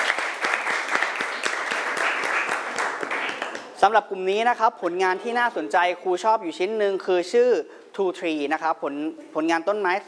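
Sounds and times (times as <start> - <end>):
classroom applause: 0.0 - 3.8
speech: 3.8 - 10.0.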